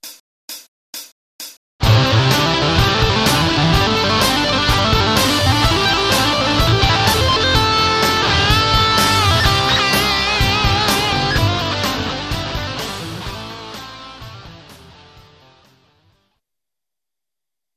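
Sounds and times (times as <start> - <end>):
guitar tapping: 1.8 - 15.4.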